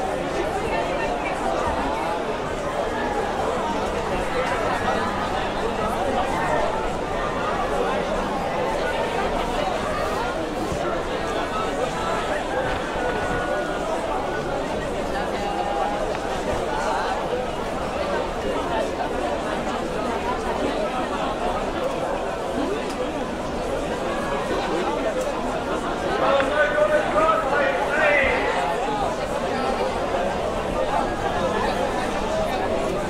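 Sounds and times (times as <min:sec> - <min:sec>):
noise of people in an old town: 0:00.0 - 0:33.0.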